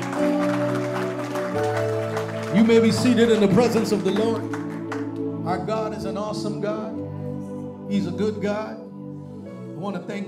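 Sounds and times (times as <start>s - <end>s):
crowd clapping: 0.0s - 5.5s
sustained organ chords: 0.0s - 10.2s
speech: 2.6s - 4.6s, 5.5s - 7.0s, 7.9s - 8.8s, 9.8s - 10.2s.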